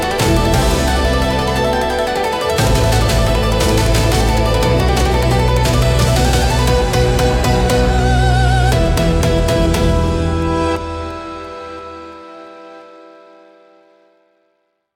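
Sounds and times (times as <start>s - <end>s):
cinematic Japanese style battle music: 0.0s - 11.2s.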